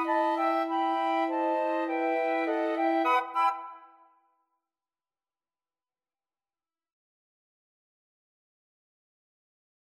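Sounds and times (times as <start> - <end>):
flute quartet: 0.0 - 4.1.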